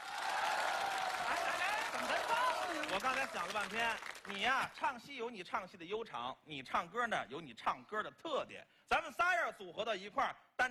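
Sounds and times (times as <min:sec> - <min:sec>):
audience applause: 0:00.0 - 0:04.4
speech: 0:02.9 - 0:10.6.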